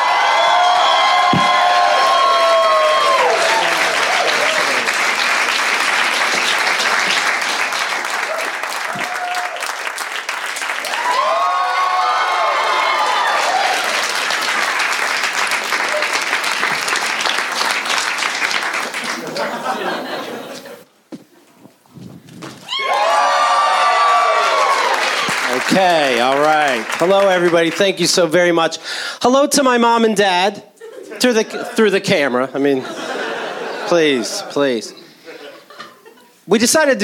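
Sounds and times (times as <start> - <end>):
audience applause and cheering welcoming a comedy headliner to the stage: 0.0 - 20.2, 22.6 - 28.0
laughter: 6.2 - 7.3, 9.9 - 11.0, 14.6 - 16.4, 17.7 - 31.0, 35.3 - 37.0
speech: 27.0 - 33.0, 33.9 - 35.0, 36.5 - 37.0.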